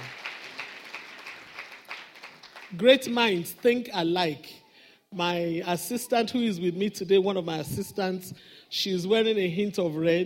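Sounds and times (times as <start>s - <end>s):
audience clapping: 0.0s - 3.8s
speech: 2.7s - 10.2s.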